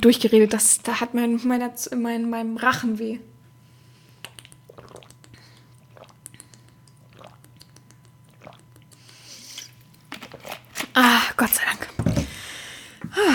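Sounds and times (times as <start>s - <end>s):
speech: 0.0s - 3.3s, 11.4s - 11.9s
steady low hum: 0.0s - 13.3s
person sipping a drink: 4.2s - 10.0s.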